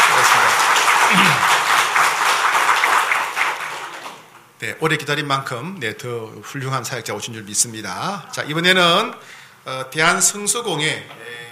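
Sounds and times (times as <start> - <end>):
church congregation clapping in welcome: 0.0 - 4.4
speech: 4.6 - 11.4.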